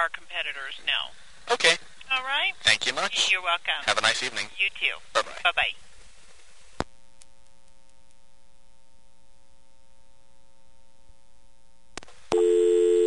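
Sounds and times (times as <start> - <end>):
speech: 0.0 - 5.9
short telephone dial tone: 12.3 - 13.0.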